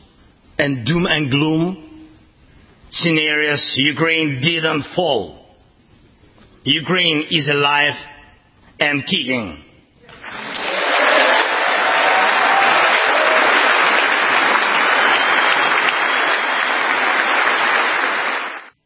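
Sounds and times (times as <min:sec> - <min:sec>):
speech: 0:00.6 - 0:01.8, 0:02.9 - 0:05.4, 0:06.6 - 0:08.1, 0:08.8 - 0:09.6
thunderous applause from members of Congress: 0:10.2 - 0:18.8.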